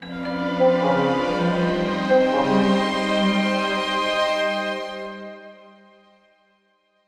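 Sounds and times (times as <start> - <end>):
musical stinger: 0.1 - 4.2.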